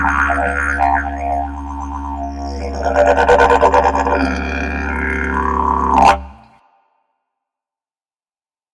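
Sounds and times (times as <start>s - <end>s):
didgeridoo: 0.0s - 6.6s.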